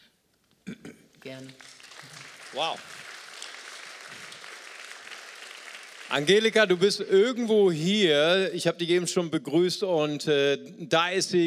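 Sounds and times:
speech: 0:01.2 - 0:01.8, 0:02.5 - 0:03.0, 0:06.1 - 0:11.4
audience applause at a Christian worship gathering: 0:01.4 - 0:07.4.

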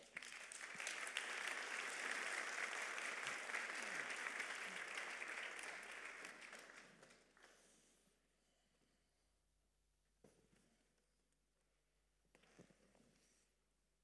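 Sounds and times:
crowd clapping: 0:00.0 - 0:07.5.

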